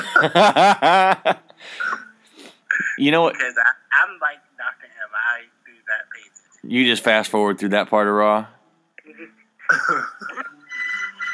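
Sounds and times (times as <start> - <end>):
laughter: 0.0 - 1.4, 9.6 - 10.7
speech: 0.2 - 1.8, 3.0 - 4.4, 6.7 - 8.6
phone ringing: 10.5 - 11.3.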